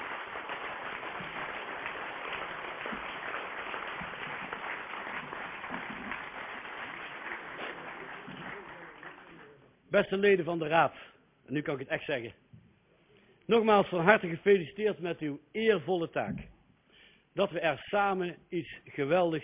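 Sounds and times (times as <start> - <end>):
applause for newly sworn-in city council members: 0.0 - 9.7
speech: 9.9 - 12.4, 13.5 - 16.5, 17.4 - 19.4.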